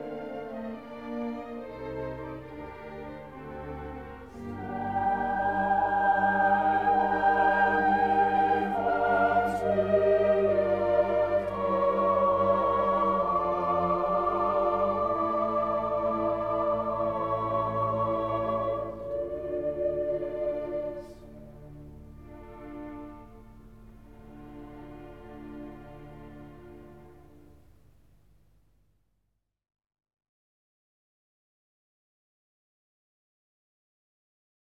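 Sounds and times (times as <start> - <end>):
choral requiem in D minor: 0.0 - 27.7.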